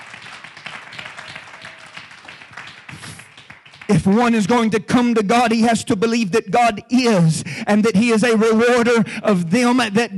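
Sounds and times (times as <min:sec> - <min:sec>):
church congregation clapping hands: 0:00.0 - 0:04.7
speech: 0:04.0 - 0:10.1.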